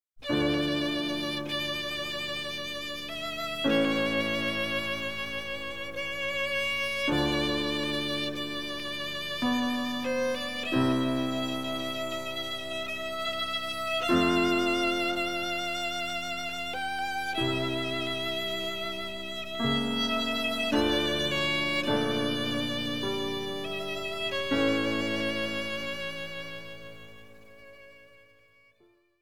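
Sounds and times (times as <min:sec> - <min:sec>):
violin sonata in D minor: 0:00.2 - 0:29.1.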